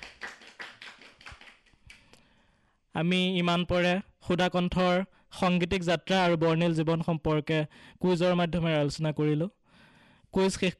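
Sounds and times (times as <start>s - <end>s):
small audience clapping for teams after a music quiz: 0.0s - 2.1s
speech: 3.0s - 9.6s, 10.3s - 10.7s.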